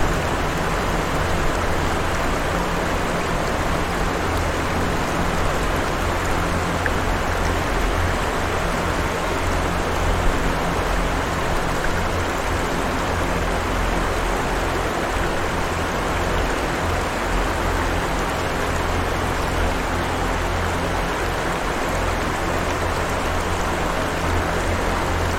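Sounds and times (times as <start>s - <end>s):
constant rush of water: 0.0s - 25.3s.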